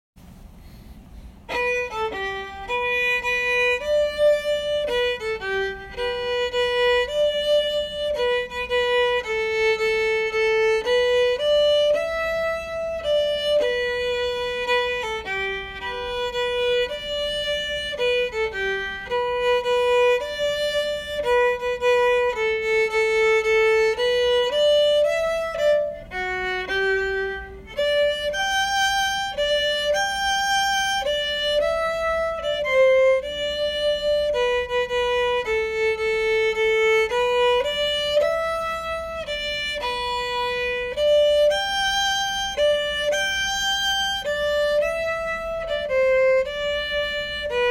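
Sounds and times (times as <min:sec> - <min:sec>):
waltz music: 0:01.6 - 0:47.6.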